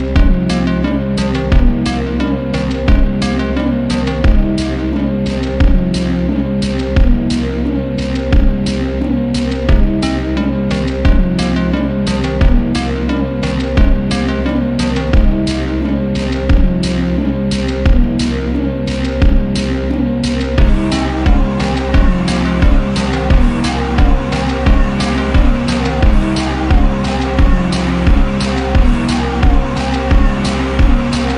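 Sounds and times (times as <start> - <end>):
slowed reverb music: 0.2 - 31.3.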